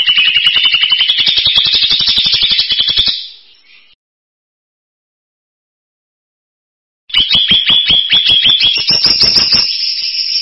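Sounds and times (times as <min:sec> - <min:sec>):
bird trill: 0:00.0 - 0:04.0, 0:07.1 - 0:10.4.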